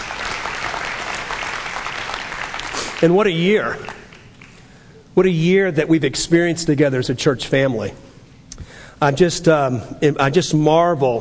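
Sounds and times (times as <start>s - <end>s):
church congregation clapping as a clap offering: 0.0s - 4.9s
speech: 3.0s - 4.0s, 5.2s - 8.0s, 9.0s - 11.1s.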